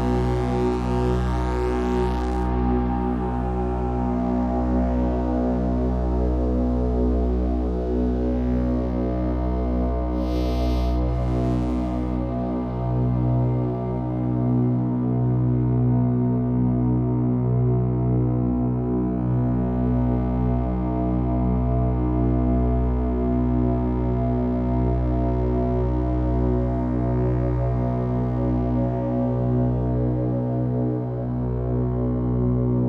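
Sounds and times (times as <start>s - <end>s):
meditation drone: 0.0s - 32.8s.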